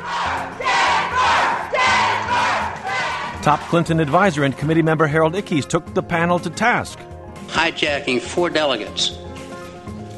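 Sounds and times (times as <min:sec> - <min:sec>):
rowdy political crowd shouting: 0:00.0 - 0:03.4
speech: 0:03.4 - 0:09.2.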